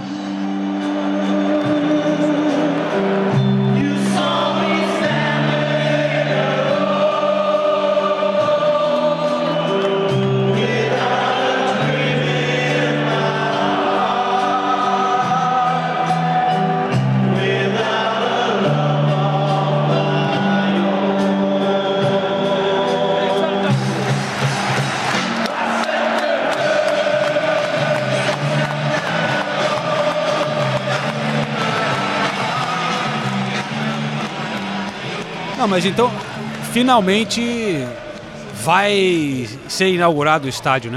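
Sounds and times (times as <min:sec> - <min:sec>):
football fans singing a stadium chant: 0:00.0 - 0:35.9
speech: 0:35.7 - 0:38.0, 0:38.6 - 0:40.9.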